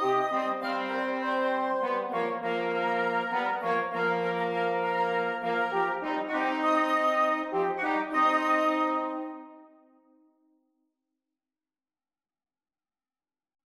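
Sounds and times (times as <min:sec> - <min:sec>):
wind quintet: 0:00.0 - 0:10.2.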